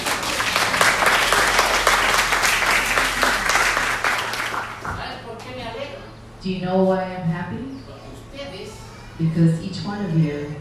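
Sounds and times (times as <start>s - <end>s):
audience applause: 0.0s - 5.1s
speech: 6.5s - 7.6s, 9.2s - 10.6s.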